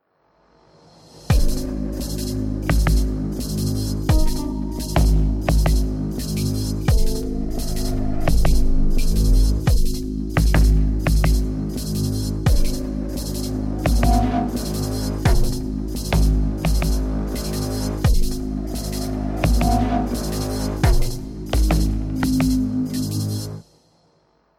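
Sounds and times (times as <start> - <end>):
music: 0.0 - 24.5.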